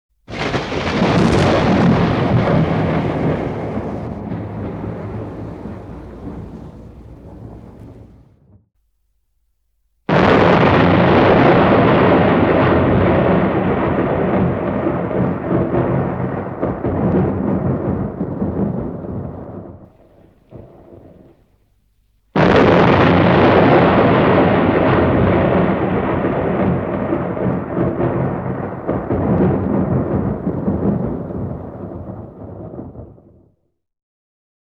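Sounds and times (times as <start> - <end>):
thunderstorm overhead: 0.3 - 8.7, 10.1 - 33.6.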